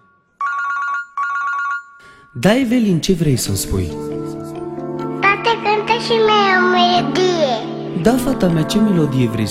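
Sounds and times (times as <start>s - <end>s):
phone ringtone of an incoming call: 0.4s - 2.1s
speech: 2.3s - 4.2s, 6.0s - 9.4s.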